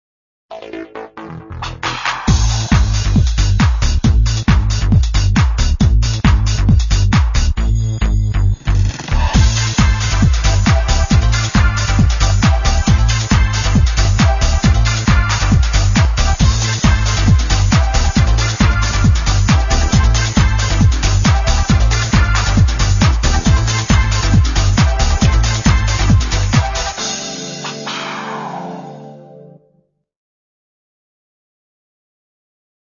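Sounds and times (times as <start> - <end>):
techno music: 0.5 - 29.7.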